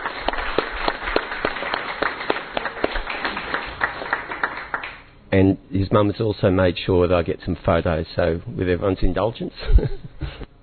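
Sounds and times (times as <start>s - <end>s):
audience applause: 0.0s - 5.0s
speech: 5.4s - 10.1s.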